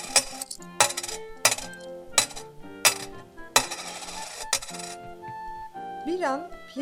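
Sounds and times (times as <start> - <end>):
gold coins dropping: 0.0 - 5.0
speech: 6.2 - 6.8.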